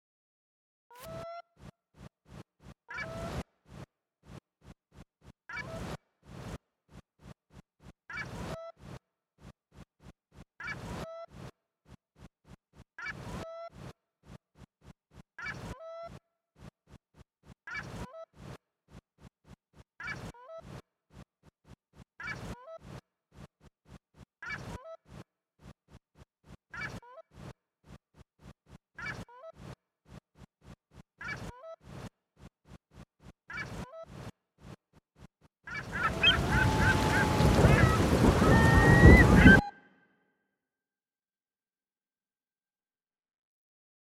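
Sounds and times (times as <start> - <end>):
birds calling: 35.7 - 39.7
rain: 36.0 - 39.5.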